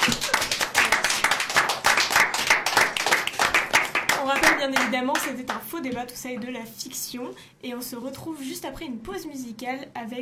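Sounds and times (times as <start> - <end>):
audience applause: 0.0 - 4.6
speech: 4.3 - 10.1.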